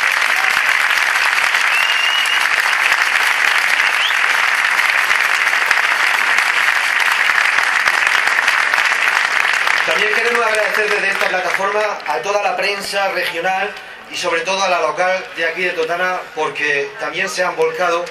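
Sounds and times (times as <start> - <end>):
audience applause: 0.0 - 13.3
speech: 10.5 - 18.0.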